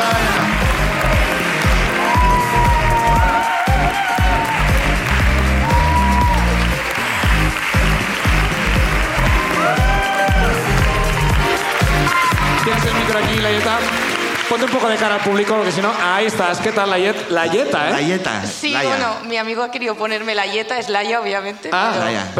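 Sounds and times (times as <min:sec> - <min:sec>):
cheering voices and whoops: 0:00.0 - 0:06.9, 0:09.0 - 0:12.8
audience clapping: 0:00.0 - 0:17.6
speech: 0:14.6 - 0:22.3.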